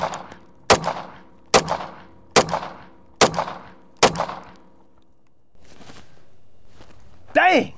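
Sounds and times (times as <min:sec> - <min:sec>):
gunshots fired at armored vehicle glass: 0:00.0 - 0:04.6.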